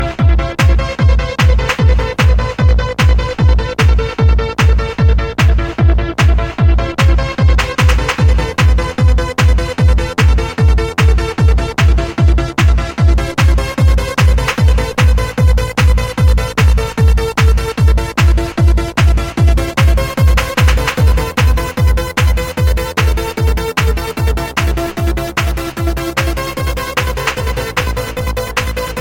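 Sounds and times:
trance music: 0.0s - 29.0s.

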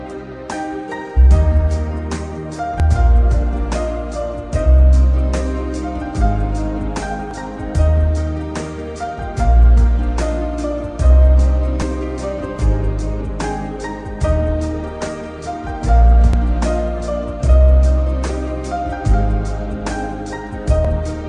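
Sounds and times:
piano: 0.0s - 21.2s.

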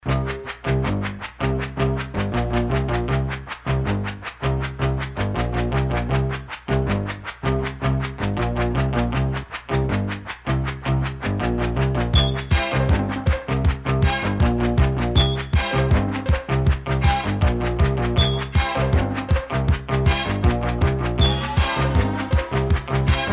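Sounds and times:
heavy metal music: 0.1s - 23.3s.

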